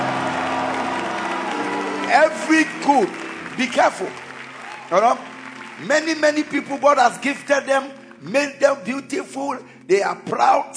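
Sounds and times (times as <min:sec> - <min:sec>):
audience applause: 0:00.0 - 0:08.3
speech: 0:02.1 - 0:04.2, 0:04.9 - 0:10.7.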